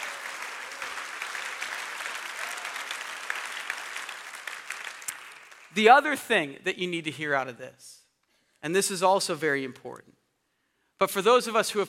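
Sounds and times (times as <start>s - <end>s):
audience applause: 0.0s - 5.8s
speech: 5.8s - 8.0s, 8.6s - 10.2s, 11.0s - 11.8s.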